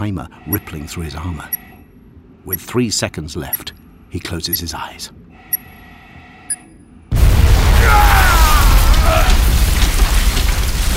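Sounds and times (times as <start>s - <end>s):
speech: 0.0s - 1.7s, 2.4s - 5.2s
grenade explosion: 7.1s - 10.9s.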